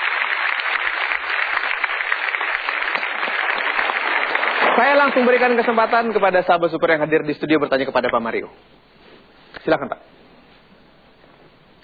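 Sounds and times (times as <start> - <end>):
studio audience applause: 0.0 - 6.6
speech: 4.8 - 8.8, 9.6 - 10.2.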